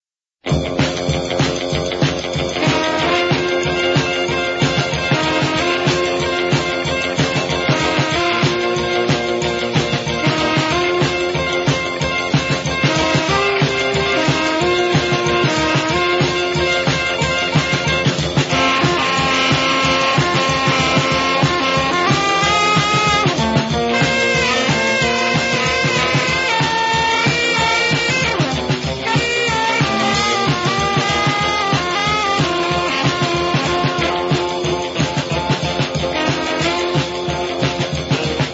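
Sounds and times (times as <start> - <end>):
instrumental music: 0.4 - 38.5.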